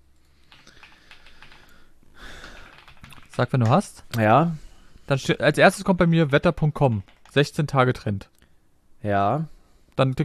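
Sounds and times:
typing a search on a computer keyboard: 0.5s - 1.8s, 2.4s - 3.8s, 6.0s - 7.5s
speech: 3.4s - 8.3s, 9.0s - 10.2s.

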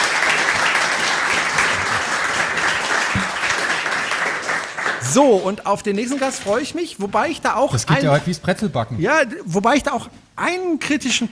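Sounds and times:
audience applause: 0.0s - 7.3s
laughter: 0.0s - 9.2s
speech: 5.1s - 11.3s.

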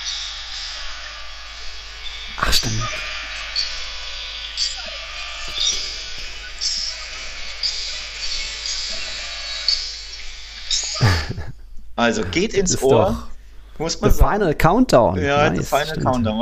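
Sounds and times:
stadium crowd cheering a Rayo goal: 0.0s - 11.4s
speech: 2.4s - 3.1s, 12.0s - 16.4s
laughter: 10.9s - 13.2s.

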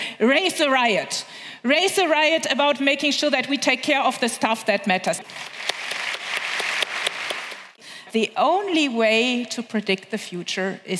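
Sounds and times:
speech: 0.2s - 5.6s, 8.1s - 10.9s
crowd applauding: 5.3s - 7.8s.

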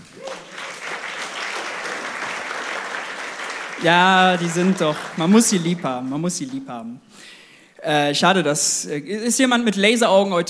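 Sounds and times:
crowd applause: 0.0s - 6.5s
speech: 3.8s - 10.4s.

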